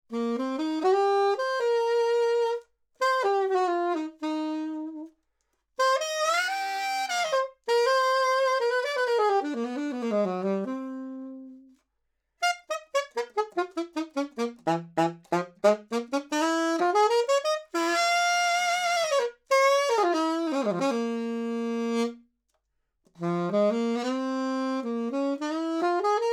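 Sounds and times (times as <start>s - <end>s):
alto saxophone: 0.1s - 11.8s, 12.4s - 22.3s, 23.1s - 26.3s.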